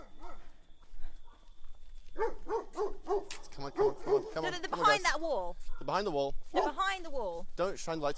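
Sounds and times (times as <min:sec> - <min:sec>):
dogs barking and yelping: 0:00.0 - 0:00.6, 0:02.2 - 0:05.0, 0:06.6 - 0:06.8
speech: 0:05.0 - 0:08.1.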